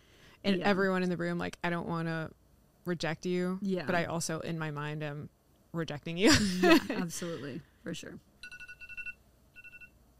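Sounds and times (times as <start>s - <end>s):
speech: 0.4s - 8.6s
laughter: 6.3s - 7.6s
TikTok phone alarm going off: 8.4s - 10.0s.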